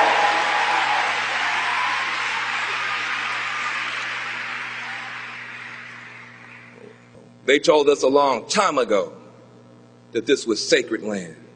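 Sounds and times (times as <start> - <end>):
audience applause: 0.0 - 7.0
speech: 7.5 - 9.2, 10.1 - 11.4.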